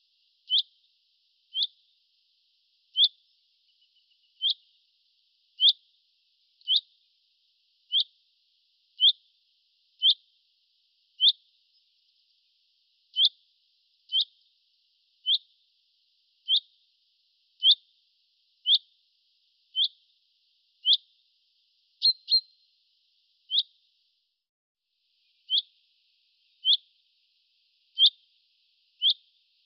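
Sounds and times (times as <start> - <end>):
bird trills: 0.0 - 0.7, 1.5 - 1.8, 2.9 - 4.8, 5.6 - 5.8, 6.6 - 6.9, 7.9 - 8.1, 11.2 - 11.4, 13.2 - 13.4, 14.1 - 14.4, 15.2 - 15.5, 16.5 - 16.7, 17.6 - 17.8, 18.6 - 18.9, 19.7 - 20.0, 20.8 - 21.0, 22.0 - 22.6, 23.5 - 23.7, 25.2 - 25.8, 26.4 - 26.9, 27.9 - 28.3, 29.0 - 29.3.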